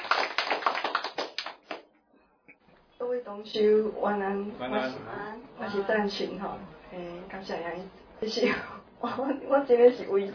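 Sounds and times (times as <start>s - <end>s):
sparse hand claps at an evening gathering: 0.0s - 1.9s
speech: 3.3s - 10.3s.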